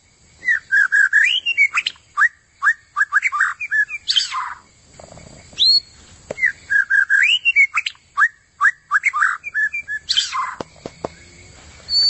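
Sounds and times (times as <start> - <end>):
White-rumped shama singing varied whistled phrases with harsh note: 0.4 - 4.6, 5.6 - 10.6, 11.9 - 12.0.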